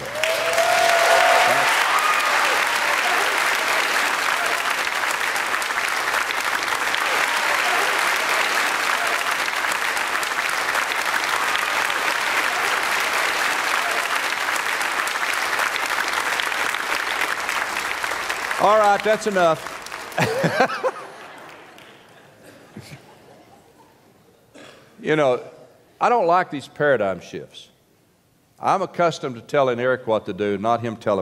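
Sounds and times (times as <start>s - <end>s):
audience applause: 0.0s - 22.1s
laughter: 2.6s - 4.8s, 6.8s - 9.5s, 20.1s - 24.0s
speech: 18.9s - 20.9s, 25.1s - 27.7s, 28.6s - 31.2s.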